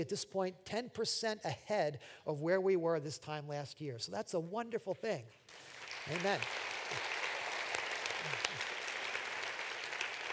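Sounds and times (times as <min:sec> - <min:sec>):
speech: 0:00.0 - 0:07.1
audience clapping: 0:05.5 - 0:10.3.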